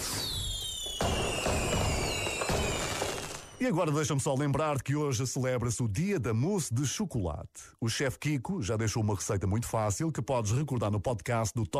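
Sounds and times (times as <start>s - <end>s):
shrill whistling firework rockets: 0.0s - 3.6s
speech: 3.6s - 11.7s.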